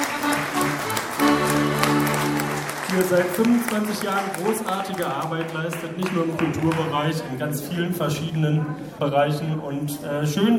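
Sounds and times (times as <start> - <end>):
audience applause at the 25th anniversary celebration of the Neue Schmiede: 0.0 - 6.9
speech: 3.0 - 10.5.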